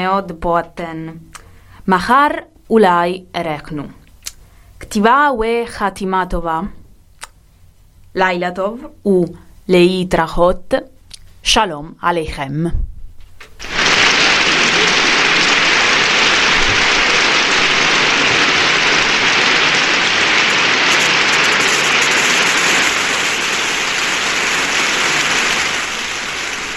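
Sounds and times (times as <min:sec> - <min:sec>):
speech: 0:00.0 - 0:01.3, 0:01.9 - 0:04.0, 0:04.8 - 0:06.8, 0:08.2 - 0:12.9
large audience applause: 0:13.6 - 0:26.7.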